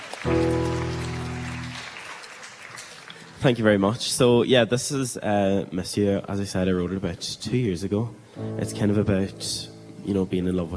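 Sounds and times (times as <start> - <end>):
audience applause: 0.0 - 3.5
speech: 3.4 - 10.7.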